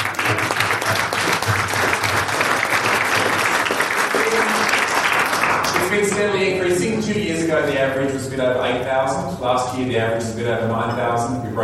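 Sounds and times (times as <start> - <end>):
audience applause: 0.0 - 6.3
speech: 5.9 - 11.6.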